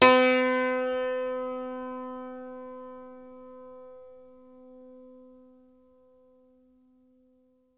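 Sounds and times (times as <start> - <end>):
hackbrett hammered dulcimer note C: 0.0 - 2.6.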